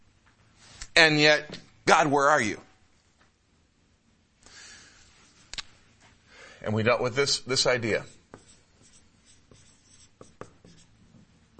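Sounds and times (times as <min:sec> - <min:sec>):
speech: 0:01.0 - 0:02.7, 0:06.6 - 0:08.2
writing scratching on a board: 0:07.8 - 0:11.5.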